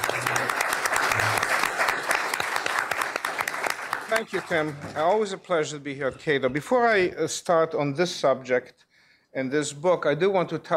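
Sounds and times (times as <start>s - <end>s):
audience applause welcoming a speaker at a Cato Institute event: 0.0s - 4.9s
speech: 4.2s - 10.7s.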